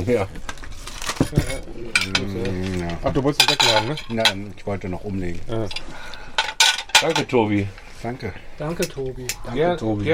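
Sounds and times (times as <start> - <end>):
speech: 0.0 - 0.5, 1.3 - 6.2, 7.0 - 10.1
plates being cleared from a table clinking against cutlery: 1.2 - 4.5, 5.7 - 7.4.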